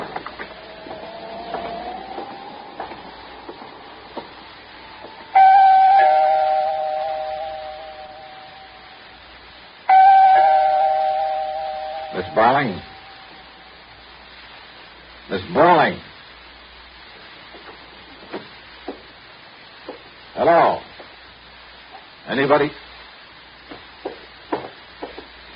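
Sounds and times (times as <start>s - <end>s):
apartment doorbell ringing: 5.4s - 8.8s, 9.9s - 13.4s
speech: 22.5s - 22.8s.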